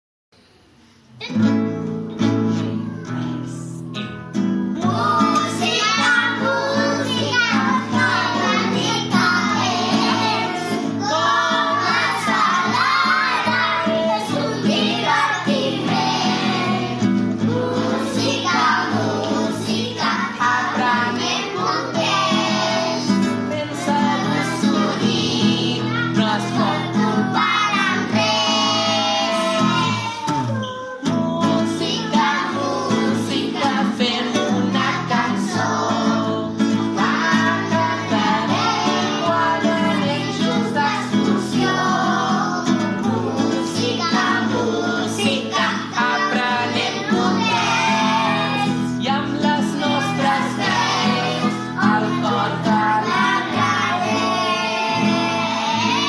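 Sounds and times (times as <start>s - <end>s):
music: 1.1s - 56.0s.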